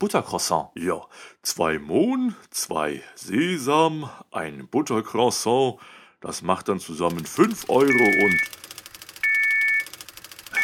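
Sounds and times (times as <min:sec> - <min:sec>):
speech: 0:00.0 - 0:08.6
bell ringing: 0:07.6 - 0:08.6.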